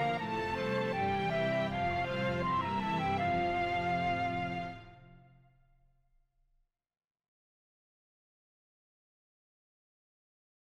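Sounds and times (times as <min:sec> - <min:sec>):
horns playing up and down the ladder in fifths: 0:00.0 - 0:05.0.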